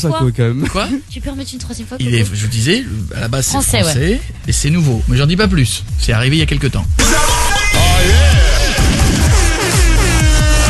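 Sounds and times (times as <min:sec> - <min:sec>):
speech: 0:00.0 - 0:07.3, 0:08.0 - 0:08.4
foghorn blast: 0:07.8 - 0:10.6.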